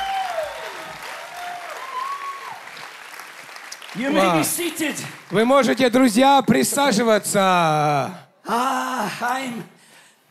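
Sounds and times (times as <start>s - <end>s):
church congregation applauding during a service: 0.0s - 6.2s
speech: 3.9s - 9.7s.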